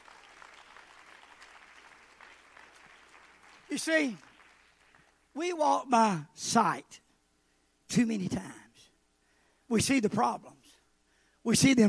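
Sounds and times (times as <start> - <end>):
audience clapping hands: 0.0 - 5.3
speech: 3.7 - 4.3, 5.4 - 7.0, 7.9 - 8.6, 9.7 - 10.6, 11.4 - 11.8.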